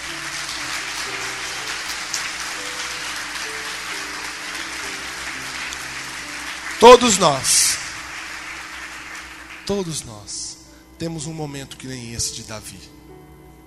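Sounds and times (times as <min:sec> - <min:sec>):
audience applause: 0:00.0 - 0:10.0
speech: 0:06.8 - 0:07.8, 0:09.7 - 0:13.0.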